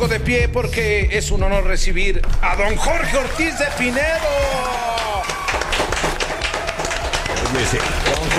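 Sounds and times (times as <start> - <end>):
speech: 0.1 - 5.3, 7.5 - 8.3
audience clapping in an ovation: 2.2 - 8.3.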